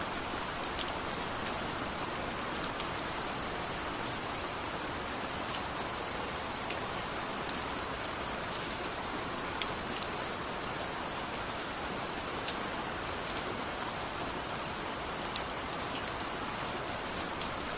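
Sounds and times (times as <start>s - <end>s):
rain: 0.0s - 17.7s.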